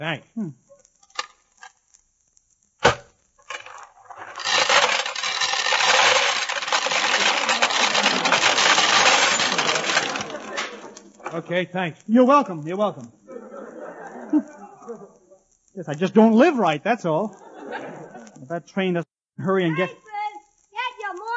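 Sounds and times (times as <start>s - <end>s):
speech: 0.0s - 0.6s, 11.3s - 13.2s, 15.8s - 17.4s, 18.5s - 20.0s
peanut vending machine mechanism rattling churn: 3.4s - 11.4s
coins dropping into a peanut vending machine: 3.5s - 11.1s
laughter: 9.4s - 11.5s, 13.3s - 15.4s, 17.1s - 18.6s.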